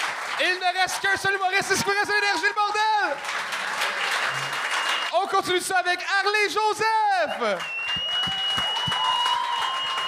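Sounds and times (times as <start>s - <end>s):
audience applause: 0.0s - 5.9s, 7.3s - 10.0s
speech: 0.4s - 7.8s.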